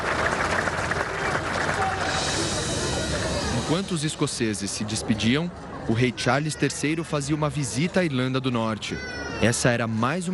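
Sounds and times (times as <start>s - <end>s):
crowd applauding as coffin leaves cathedral: 0.0s - 4.0s
speech: 3.7s - 10.3s.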